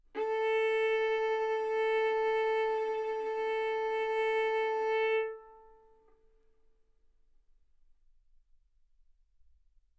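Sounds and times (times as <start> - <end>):
violin bowed arco notes: 0.2 - 6.0.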